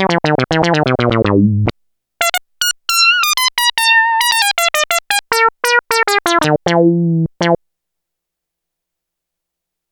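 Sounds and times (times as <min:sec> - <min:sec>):
funky Roland SH-101 synthesizer factory patches: 0:00.0 - 0:07.6.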